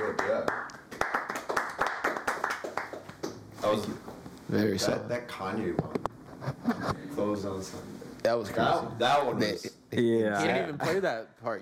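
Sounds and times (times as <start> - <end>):
person clapping in a quick steady rhythm: 0.0 - 3.4
speech: 3.6 - 6.0, 6.8 - 11.6.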